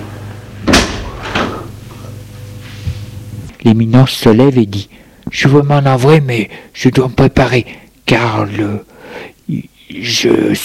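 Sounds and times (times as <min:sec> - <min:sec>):
low steady hum: 0:00.0 - 0:10.6
door shutting: 0:00.6 - 0:01.8
speech: 0:03.6 - 0:10.6.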